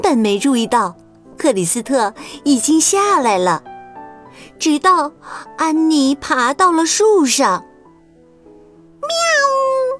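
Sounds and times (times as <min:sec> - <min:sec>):
speech: 0:00.0 - 0:03.7, 0:04.3 - 0:07.7, 0:09.0 - 0:09.9
cat meow: 0:09.0 - 0:09.9.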